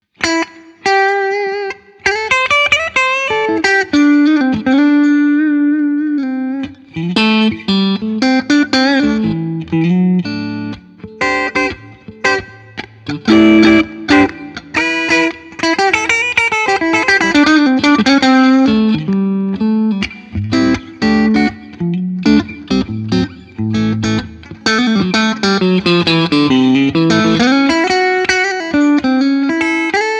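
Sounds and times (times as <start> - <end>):
Yamaha Pacifica Standard Plus clean guitar on neck and middle pickups: 0.0 - 30.1.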